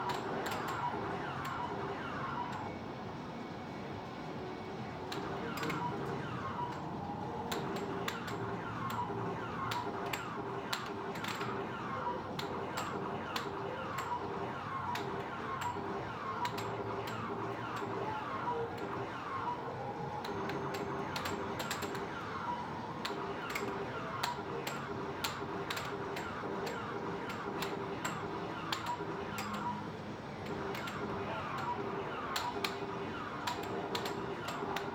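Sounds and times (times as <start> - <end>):
video games in a small arcade: 0.0 - 34.9
air hockey in a small arcade: 6.7 - 19.0, 20.2 - 22.2, 23.0 - 29.8, 30.4 - 34.9.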